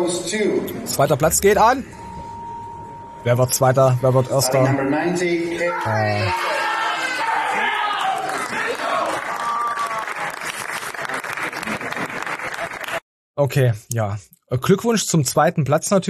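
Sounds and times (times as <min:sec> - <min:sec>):
speech: 0:00.0 - 0:02.0, 0:03.2 - 0:06.6, 0:13.4 - 0:16.0
man yelling: 0:05.5 - 0:09.2
crowd clapping and cheering at a competition place announcement: 0:06.1 - 0:13.0.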